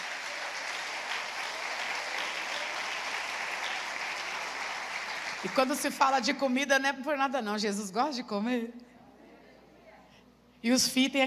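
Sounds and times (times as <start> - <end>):
audience applauding: 0.0 - 6.0
speech: 5.4 - 8.9, 10.6 - 11.2.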